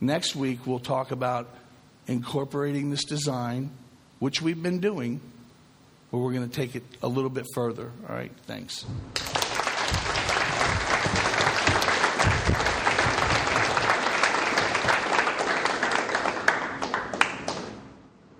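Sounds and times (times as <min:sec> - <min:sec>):
speech: 0:00.0 - 0:05.4, 0:06.1 - 0:10.5
audience applause: 0:09.2 - 0:17.9.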